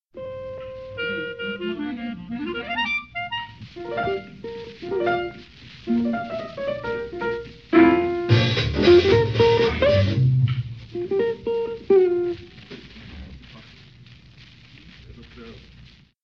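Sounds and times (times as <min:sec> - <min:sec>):
blues music: 0:00.1 - 0:16.0.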